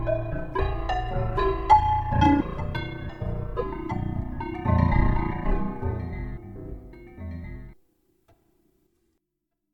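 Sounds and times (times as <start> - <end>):
forte piano: 0.0 - 7.8.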